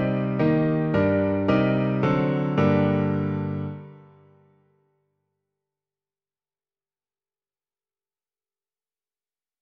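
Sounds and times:
piano version of a song: 0:00.0 - 0:04.7.

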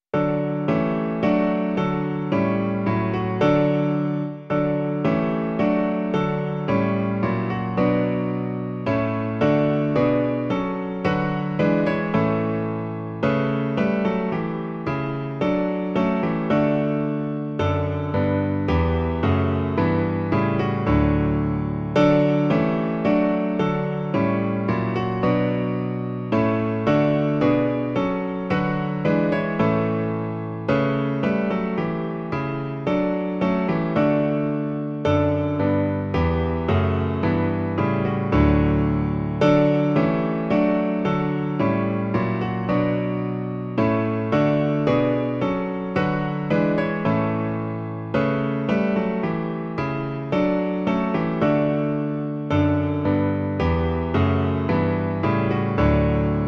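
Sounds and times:
piano: 0:00.0 - 0:56.4.

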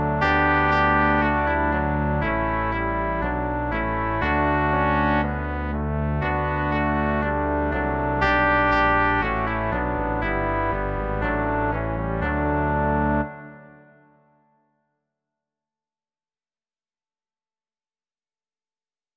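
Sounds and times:
brass quartet: 0:00.0 - 0:13.3.

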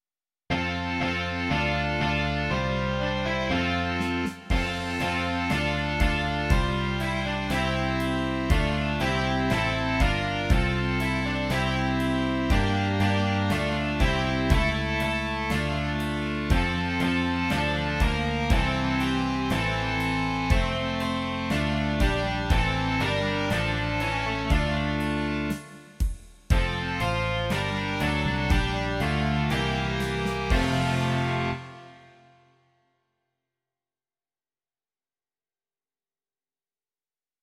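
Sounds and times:
rock music: 0:00.5 - 0:32.3.

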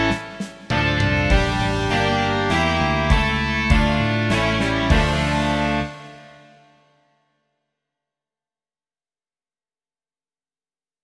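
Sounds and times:
rock music: 0:00.0 - 0:06.6.

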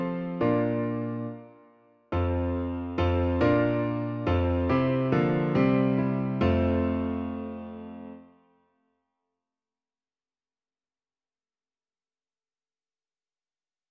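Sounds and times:
piano version: 0:00.0 - 0:08.5.

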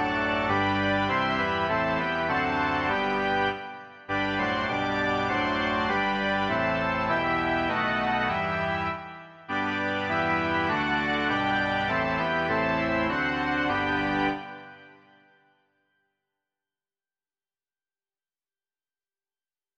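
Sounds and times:
organ: 0:00.0 - 0:15.4.

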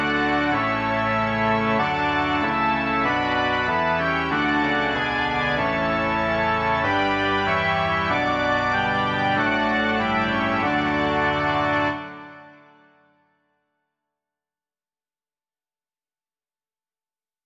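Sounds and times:
organ: 0:00.0 - 0:13.1.

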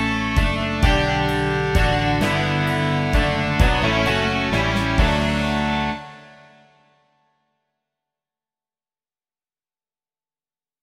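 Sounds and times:
rock music: 0:00.0 - 0:06.8.

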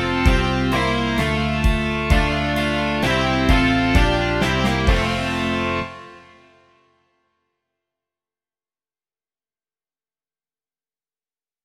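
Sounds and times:
rock music: 0:00.0 - 0:06.6.

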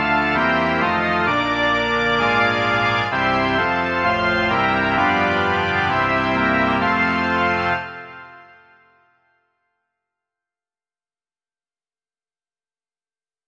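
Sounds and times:
organ: 0:00.0 - 0:08.9.

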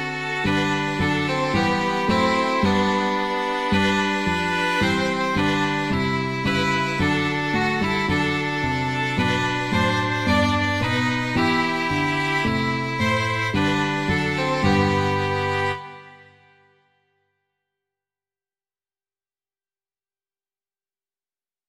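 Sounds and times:
two violins and lute: 0:00.0 - 0:16.7.

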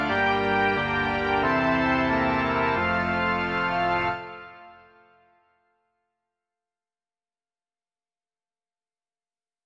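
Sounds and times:
organ: 0:00.0 - 0:05.4.

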